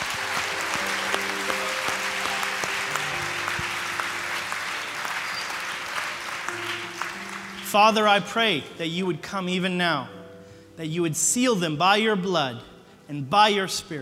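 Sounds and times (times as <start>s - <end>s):
audience clapping: 0.0s - 8.6s
speech: 7.7s - 10.2s, 10.8s - 14.0s.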